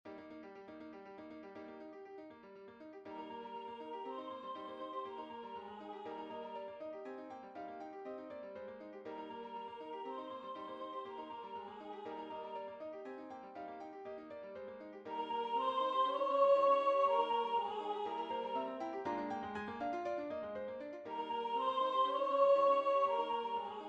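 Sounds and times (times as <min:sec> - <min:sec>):
soprano singing a sacred piece: 0:03.1 - 0:07.6, 0:09.0 - 0:14.1, 0:15.0 - 0:23.8.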